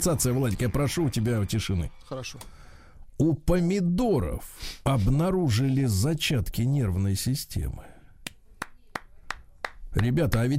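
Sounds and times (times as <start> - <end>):
speech: 0.0 - 2.6, 3.2 - 7.9, 10.0 - 10.5
hand claps: 8.3 - 9.9.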